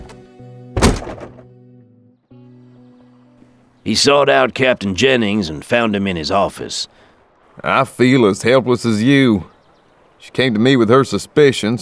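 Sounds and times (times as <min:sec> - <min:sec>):
door shutting: 0:00.8 - 0:01.5
speech: 0:03.9 - 0:07.0, 0:07.6 - 0:09.5, 0:10.2 - 0:11.8.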